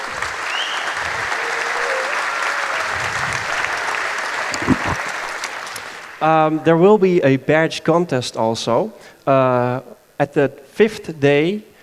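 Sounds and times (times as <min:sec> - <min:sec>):
audience applause: 0:00.0 - 0:06.2
speech: 0:06.2 - 0:11.7.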